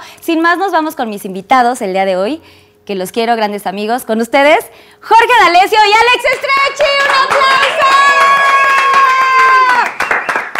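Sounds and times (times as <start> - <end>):
speech: 0.2 - 8.1
audience applause welcoming guests: 6.4 - 10.5.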